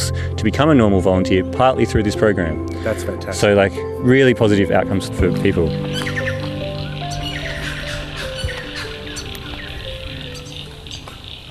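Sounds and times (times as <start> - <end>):
speech: 0.4 - 6.1
chorus of frogs calling: 5.3 - 11.4.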